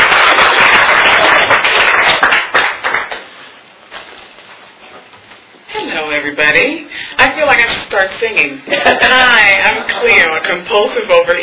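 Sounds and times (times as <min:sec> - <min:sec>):
audience applause welcoming a speaker at a gathering: 0:00.0 - 0:03.3
speech: 0:06.5 - 0:11.4.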